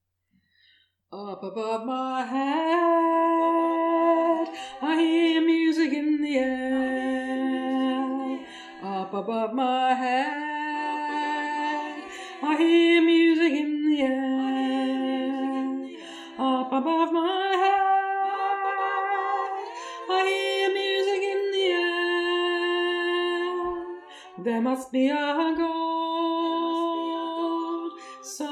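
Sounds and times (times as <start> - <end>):
alto voice singing: 1.2 - 28.5.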